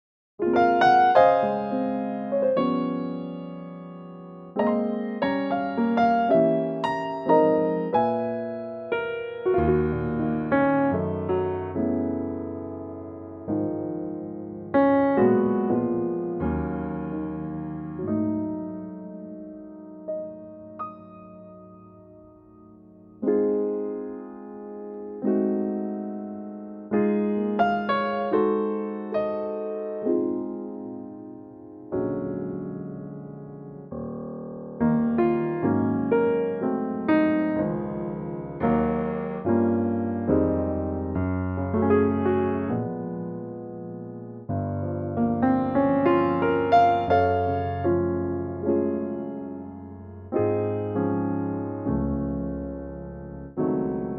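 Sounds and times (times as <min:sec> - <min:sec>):
piano in D-flat: 0:00.0 - 0:54.1.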